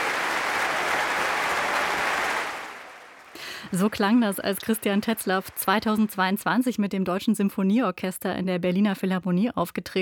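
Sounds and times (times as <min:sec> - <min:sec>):
concert audience applause: 0:00.0 - 0:06.4
speech: 0:03.7 - 0:10.0.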